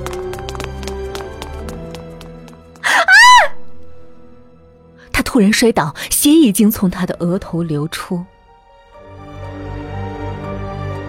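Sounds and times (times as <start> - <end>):
running footsteps of two people in an alley: 0.0 - 3.6
speech: 5.4 - 8.3.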